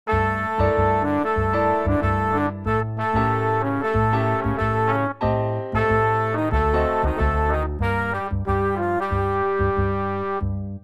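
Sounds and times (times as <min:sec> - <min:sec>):
aggressive minor-key bossa nova: 0:00.1 - 0:10.8.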